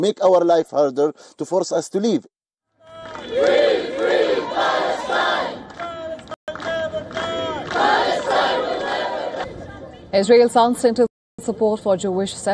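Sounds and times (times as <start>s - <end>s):
speech: 0.0s - 2.4s, 10.1s - 12.5s
protesters chanting at a demonstration: 2.8s - 6.4s, 7.0s - 9.6s.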